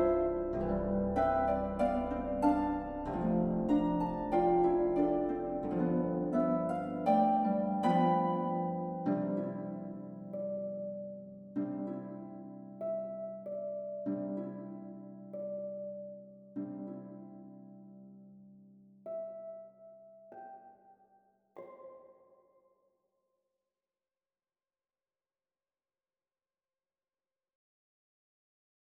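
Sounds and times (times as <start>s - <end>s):
harp: 0.0s - 22.4s.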